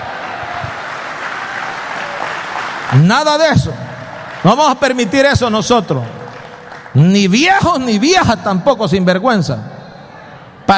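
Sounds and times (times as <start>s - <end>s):
audience clapping: 0.0s - 7.9s
speech: 2.9s - 3.8s, 4.4s - 6.2s, 6.9s - 9.7s.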